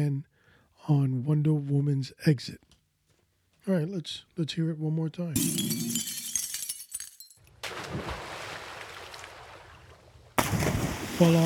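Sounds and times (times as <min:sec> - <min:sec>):
speech: 0:00.0 - 0:00.3, 0:00.9 - 0:02.7, 0:03.6 - 0:06.2, 0:11.2 - 0:11.4
water splashes: 0:07.6 - 0:11.4.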